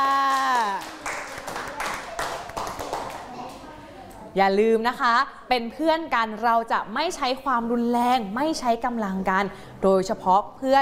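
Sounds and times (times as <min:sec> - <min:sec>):
children clapping: 0:00.0 - 0:03.7
speech: 0:04.4 - 0:10.7.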